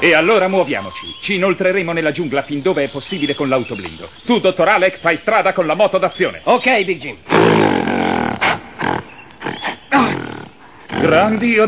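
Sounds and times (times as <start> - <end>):
speech: 0.0 - 8.1, 8.8 - 10.3, 11.0 - 11.6
giant gorilla roaring: 7.3 - 11.6.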